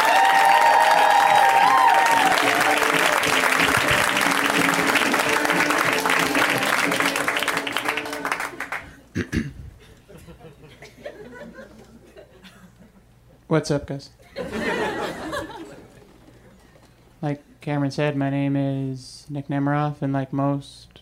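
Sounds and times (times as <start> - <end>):
audience applause: 0.0 - 9.0
laughter: 9.8 - 13.1, 14.2 - 16.8
speech: 13.5 - 14.2, 17.2 - 20.9.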